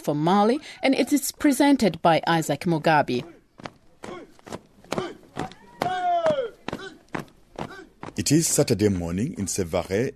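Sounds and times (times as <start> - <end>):
speech: 0.0 - 3.7, 8.2 - 10.1
young recruits' marching drill footsteps in flip-flops: 3.1 - 8.7.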